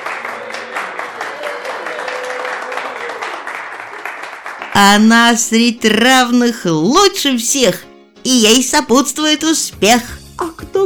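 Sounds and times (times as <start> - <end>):
crowd applause: 0.0 - 5.0
speech: 4.8 - 10.5.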